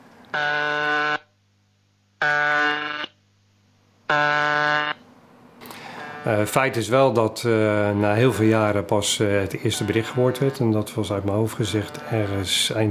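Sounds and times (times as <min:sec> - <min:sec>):
shortwave radio station buzzer tone: 0:00.3 - 0:01.3, 0:02.2 - 0:03.2, 0:04.1 - 0:05.0, 0:05.8 - 0:07.0, 0:07.7 - 0:08.8, 0:09.6 - 0:12.8
speech: 0:00.4 - 0:00.8, 0:06.2 - 0:12.8.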